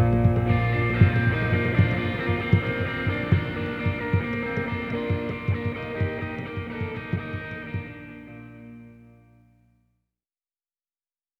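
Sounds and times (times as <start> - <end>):
cello melody: 0.0 - 7.8.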